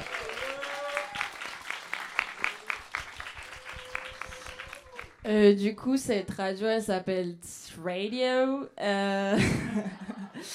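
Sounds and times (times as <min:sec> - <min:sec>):
audience applause: 0:00.0 - 0:05.3
speech: 0:05.3 - 0:10.1.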